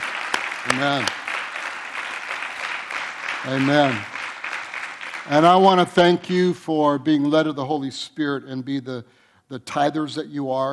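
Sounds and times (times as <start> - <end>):
audience applause: 0.0 - 6.1
speech: 0.6 - 1.2, 3.4 - 4.2, 5.3 - 10.7.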